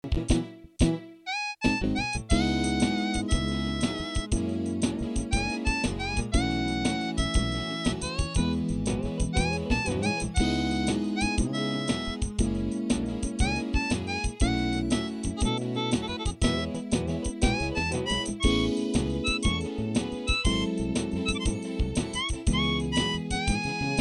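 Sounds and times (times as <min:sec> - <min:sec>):
MIDI harp music: 0:01.3 - 0:24.0.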